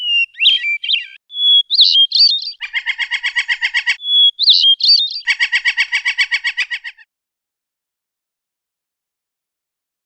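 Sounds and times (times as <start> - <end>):
Oriental magpie-robin singing rolling song: 0.0 - 7.0.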